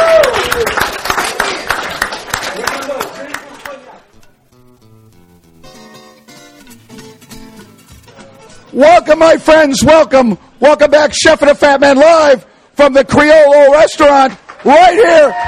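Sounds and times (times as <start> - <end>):
audience applause at a live show from the Criollo restaurant, Hotel Monteleone: 0.0 - 4.0
speech: 8.8 - 15.4.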